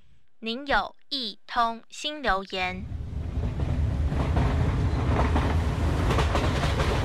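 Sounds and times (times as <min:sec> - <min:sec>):
speech: 0:00.4 - 0:03.0
train riding on rails: 0:02.5 - 0:07.0.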